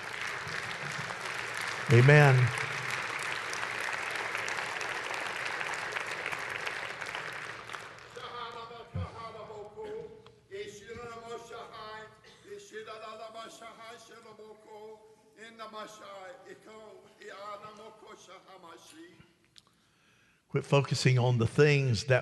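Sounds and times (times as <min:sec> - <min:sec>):
audience clapping: 0:00.0 - 0:08.9
speech: 0:01.9 - 0:02.6, 0:20.7 - 0:22.1.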